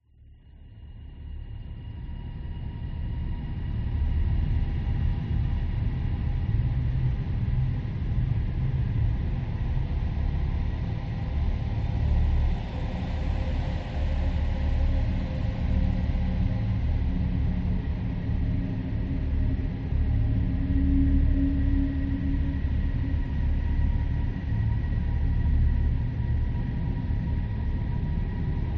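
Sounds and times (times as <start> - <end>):
ambience: 0.2 - 28.7.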